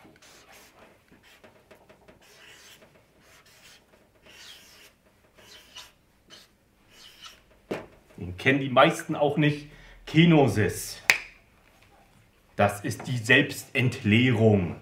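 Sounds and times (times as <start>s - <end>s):
writing a Greek term on a board: 0.0s - 7.4s
speech: 8.2s - 11.0s, 12.6s - 14.8s.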